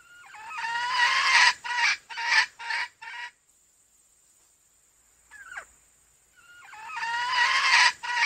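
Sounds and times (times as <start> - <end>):
female junglefowl clucking: 0.0 - 3.4, 5.3 - 5.7, 6.3 - 8.2.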